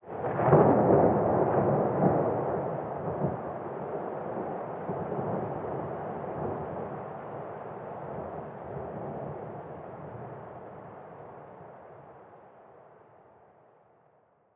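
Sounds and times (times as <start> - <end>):
thunder: 0.0 - 11.0.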